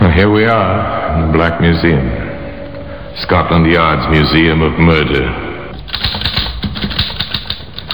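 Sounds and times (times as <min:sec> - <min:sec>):
speech: 0:00.2 - 0:02.2, 0:03.2 - 0:05.5
typewriter keystrokes: 0:05.8 - 0:07.8.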